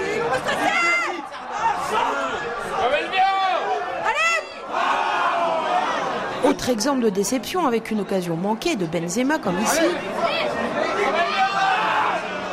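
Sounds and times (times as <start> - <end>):
football supporters shouting in a bar: 0.0 - 6.5, 9.6 - 12.5
speech: 6.6 - 11.7.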